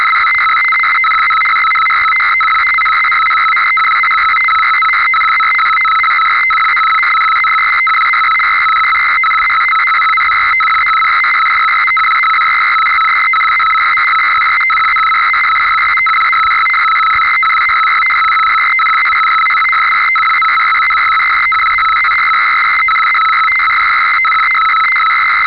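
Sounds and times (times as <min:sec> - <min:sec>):
synthesizer science fiction space telemetry computer sounds: 0:00.0 - 0:25.4.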